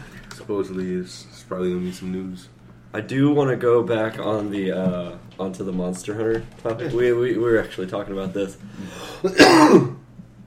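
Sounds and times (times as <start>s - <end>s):
speech: 0.5s - 9.9s
heavy sneeze: 9.2s - 10.0s.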